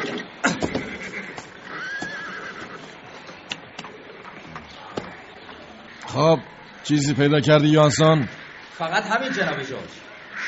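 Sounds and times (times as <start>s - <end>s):
horse neighing: 0.0s - 3.0s
horse hooves clopping as a rider dismounts: 0.0s - 5.6s
speech: 6.1s - 10.1s.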